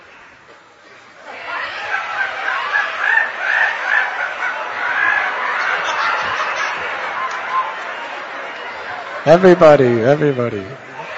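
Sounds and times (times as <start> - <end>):
laughter: 1.3 - 10.2
people imitating monkey screeches: 1.4 - 6.9
speech: 9.2 - 10.9.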